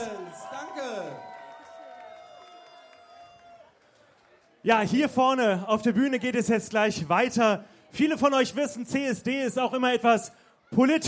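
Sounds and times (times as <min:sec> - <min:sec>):
audience applause and cheering: 0:00.0 - 0:04.7
speech: 0:04.6 - 0:11.0.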